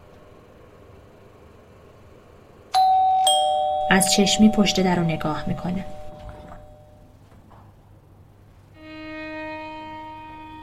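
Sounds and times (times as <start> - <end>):
doorbell ringing electronic tone: 2.8 - 7.1
quiet low hum: 2.8 - 7.1
speech: 3.9 - 6.0.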